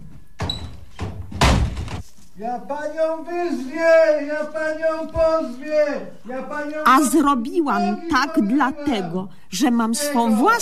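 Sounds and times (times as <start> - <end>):
door slamming shut: 0.4 - 2.0
speech: 2.4 - 10.6.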